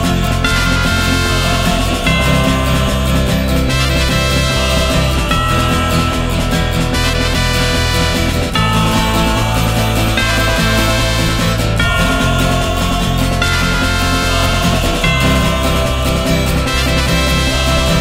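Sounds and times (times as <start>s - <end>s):
western music: 0.0s - 17.9s.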